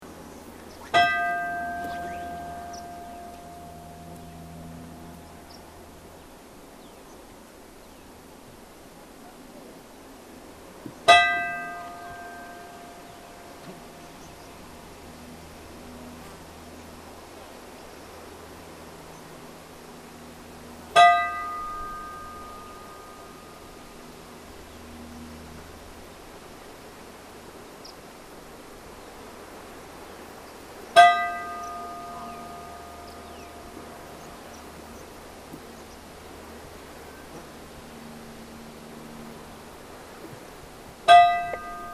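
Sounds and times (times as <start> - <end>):
church bells tolling for a funeral at Ulfljotsvatn church: 0.9 - 4.2, 11.1 - 13.0, 21.0 - 23.5, 31.0 - 34.4, 41.1 - 41.9.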